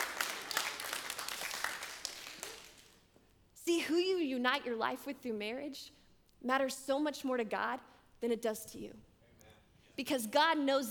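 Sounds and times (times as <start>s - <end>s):
crowd applause: 0.0s - 3.0s
speech: 3.9s - 9.1s, 10.0s - 10.9s.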